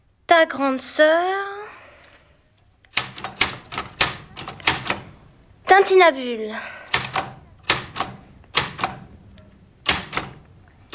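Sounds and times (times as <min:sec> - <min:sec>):
speech: 0:00.3 - 0:01.6, 0:05.8 - 0:06.8
typewriter typing a letter: 0:02.9 - 0:05.2, 0:06.9 - 0:09.2, 0:09.8 - 0:10.9.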